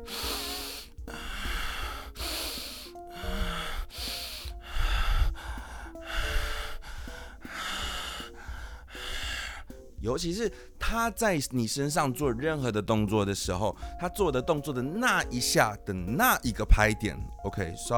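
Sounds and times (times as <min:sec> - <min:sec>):
heavy rapid breathing: 0:00.0 - 0:11.0, 0:13.8 - 0:14.1
speech: 0:10.0 - 0:17.9.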